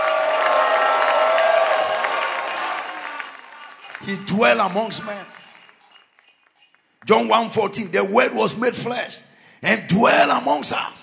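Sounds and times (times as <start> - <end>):
audience clapping hands: 0.0 - 7.4
speech: 4.1 - 5.4, 7.0 - 11.0.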